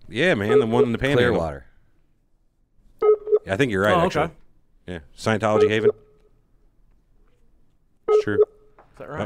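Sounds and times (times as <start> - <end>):
speech: 0.1 - 1.7, 3.4 - 6.0, 8.2 - 9.2
Skype outgoing call tones: 0.5 - 1.3, 3.0 - 4.1, 5.6 - 6.1, 8.1 - 8.5.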